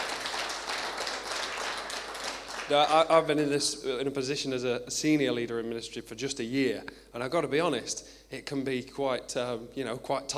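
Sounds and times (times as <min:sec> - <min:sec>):
clapping: 0:00.0 - 0:03.1
speech: 0:02.7 - 0:10.3.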